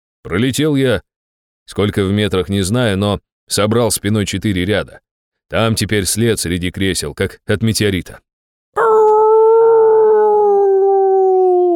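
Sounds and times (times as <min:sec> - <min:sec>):
speech: 0:00.2 - 0:01.1, 0:01.7 - 0:08.8
animal howling: 0:08.8 - 0:11.7.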